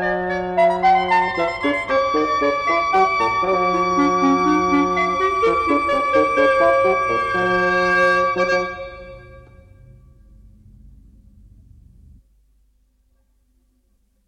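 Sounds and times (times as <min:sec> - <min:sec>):
clarinet: 0:00.0 - 0:10.1
oboe: 0:00.0 - 0:10.1
bassoon: 0:00.0 - 0:10.4.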